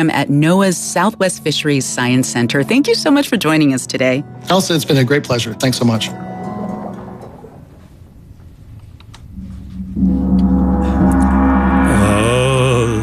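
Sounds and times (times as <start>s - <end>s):
speech: 0.0s - 6.3s
gong struck: 9.3s - 13.0s.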